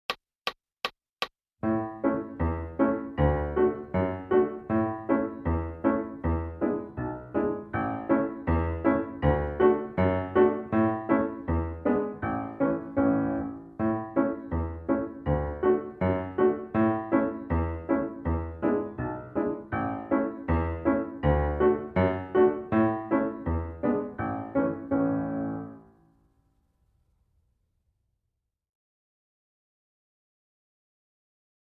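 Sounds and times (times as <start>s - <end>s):
piano: 1.6s - 26.6s.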